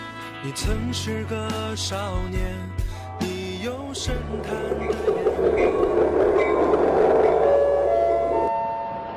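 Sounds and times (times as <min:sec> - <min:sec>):
speech: 0:00.5 - 0:06.3
train running on rails: 0:03.7 - 0:09.1
brief clear melodic tone: 0:03.8 - 0:09.0.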